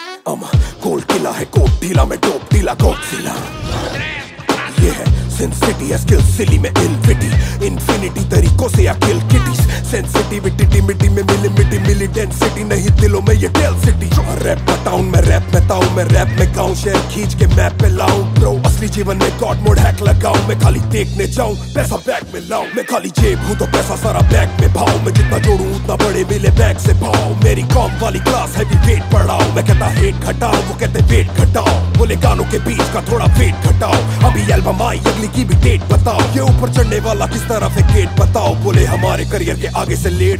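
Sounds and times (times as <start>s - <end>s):
rap ringtone: 0.0s - 40.3s.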